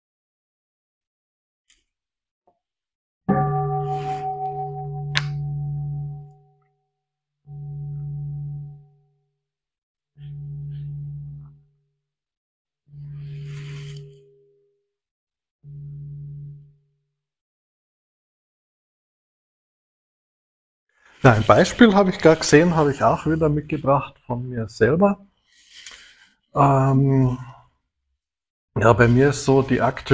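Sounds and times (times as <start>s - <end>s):
bell ringing: 3.3s - 6.5s
speech: 21.2s - 25.3s, 26.6s - 27.6s, 28.8s - 30.1s.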